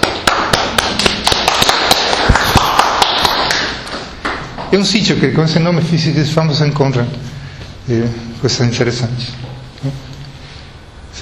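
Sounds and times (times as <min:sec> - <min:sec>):
applause: 0:00.0 - 0:03.8
speech: 0:04.7 - 0:07.3, 0:07.9 - 0:10.1.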